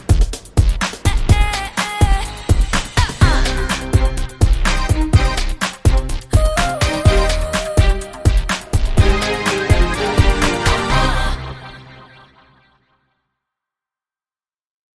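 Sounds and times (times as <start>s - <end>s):
tough breakbeat drums: 0.0s - 11.4s.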